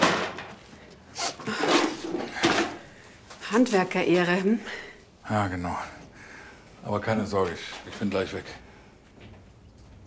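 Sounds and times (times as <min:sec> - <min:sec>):
tools being packed away: 0:00.0 - 0:00.6, 0:01.5 - 0:03.0
speech: 0:01.5 - 0:01.8, 0:03.5 - 0:06.0, 0:06.8 - 0:08.6.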